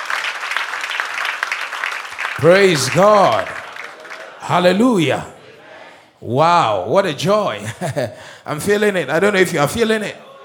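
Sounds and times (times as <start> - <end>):
audience clapping: 0.0 - 5.3
speech: 2.4 - 3.6, 4.5 - 5.4, 6.2 - 10.2
laughter: 7.6 - 8.3.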